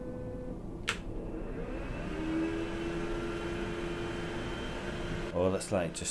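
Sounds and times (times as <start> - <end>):
faint motor hum: 0.0 - 6.0
sharp click: 0.8 - 1.1
dryer blowing air: 0.9 - 6.0
speech: 5.4 - 6.0.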